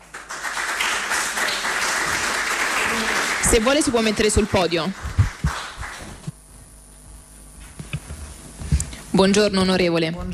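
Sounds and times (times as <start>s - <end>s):
audience applause: 0.0s - 6.3s
speech: 3.5s - 5.1s, 9.2s - 10.3s.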